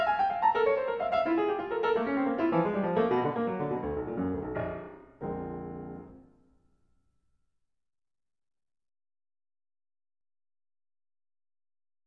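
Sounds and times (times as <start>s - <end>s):
piano transcriptions: 0.0s - 6.4s.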